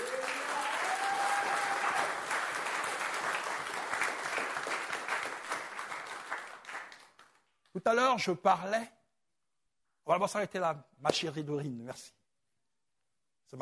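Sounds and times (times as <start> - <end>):
congregation applauding during a church service: 0.0 - 7.5
speech: 7.8 - 9.0, 10.1 - 12.2.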